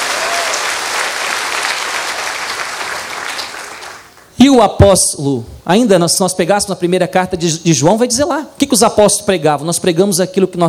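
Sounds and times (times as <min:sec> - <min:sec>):
audience applause: 0:00.0 - 0:04.2
speech: 0:04.4 - 0:10.6.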